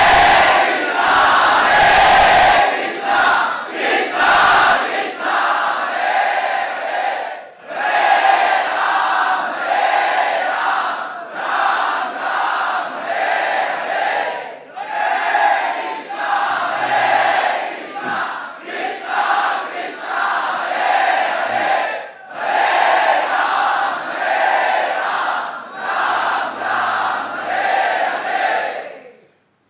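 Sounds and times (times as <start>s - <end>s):
crowd chanting loudly together: 0.0s - 29.3s.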